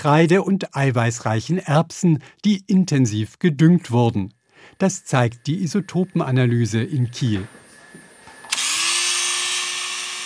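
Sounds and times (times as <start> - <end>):
speech: 0.0 - 7.6
motorised saw cutting ancient bones or teeth in an isotope lab: 7.6 - 10.2.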